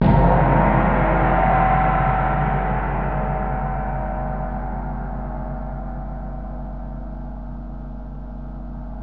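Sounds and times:
gong: 0.0s - 9.0s.

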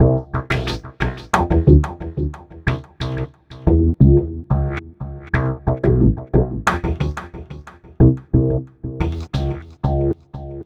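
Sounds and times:
remixed acoustic bass: 0.0s - 10.6s.

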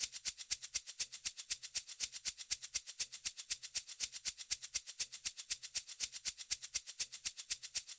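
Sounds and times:
shaker: 0.0s - 7.9s.

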